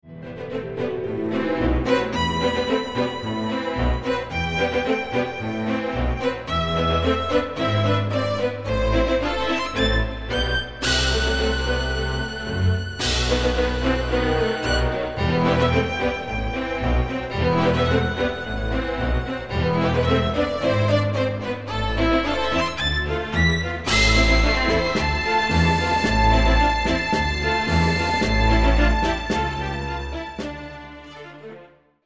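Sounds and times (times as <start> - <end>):
tango music: 0.0 - 31.8.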